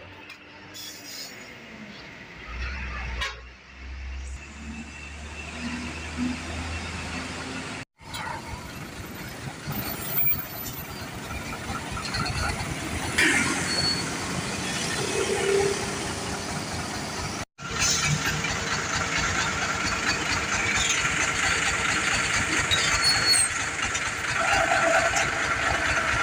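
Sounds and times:
traffic jam with trucks in the Pantura Timur region: 0.0s - 26.2s
vehicle horns: 3.0s - 3.6s.

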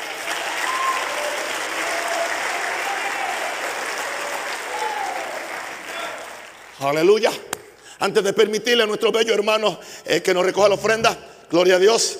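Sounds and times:
loud audience applause: 0.0s - 7.0s
speech: 6.8s - 12.1s.

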